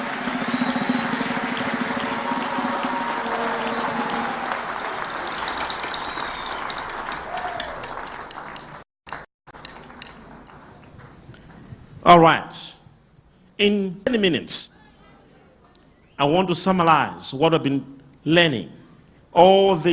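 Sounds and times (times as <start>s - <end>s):
audience clapping hands: 0.0s - 11.1s
speech: 12.1s - 12.7s, 13.6s - 14.7s, 16.2s - 19.9s.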